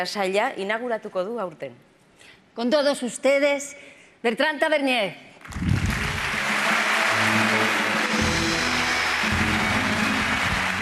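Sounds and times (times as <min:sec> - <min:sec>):
speech: 0:00.0 - 0:05.7
audience applause: 0:05.5 - 0:10.8.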